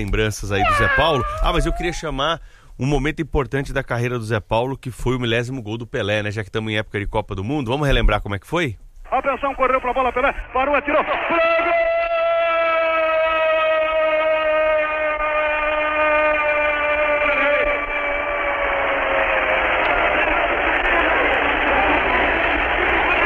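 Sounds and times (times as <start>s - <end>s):
speech: 0.0s - 11.9s
stadium crowd applauding and cheering: 10.9s - 23.2s
buzzing horn-like tone: 13.4s - 20.6s.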